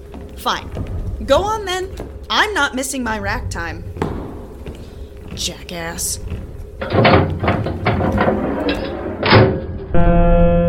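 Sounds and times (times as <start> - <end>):
speech: 0.4 - 3.9, 5.4 - 8.9
airlock door opening with mechanical thumps: 0.7 - 10.1
steady buzzing tone: 9.4 - 10.6.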